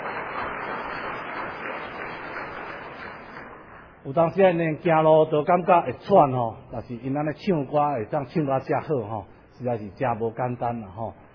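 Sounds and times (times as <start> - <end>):
audience applause: 0.0 - 3.9
speech: 4.0 - 11.2.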